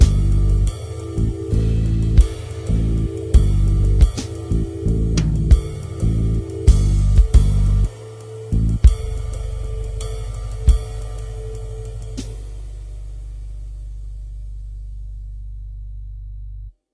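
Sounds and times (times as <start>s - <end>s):
rainy morning music: 0.0s - 12.6s.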